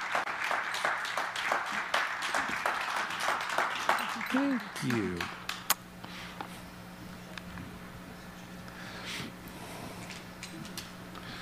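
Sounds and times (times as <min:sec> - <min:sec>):
audience round of applause: 0:00.0 - 0:05.7
speech: 0:04.3 - 0:05.4.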